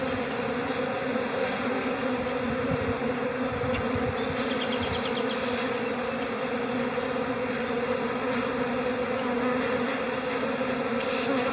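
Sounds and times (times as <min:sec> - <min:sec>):
honey bee hive buzzing: 0:00.0 - 0:11.5.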